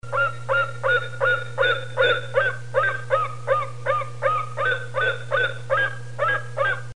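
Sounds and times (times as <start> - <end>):
golden eagle call: 0.1 - 6.9.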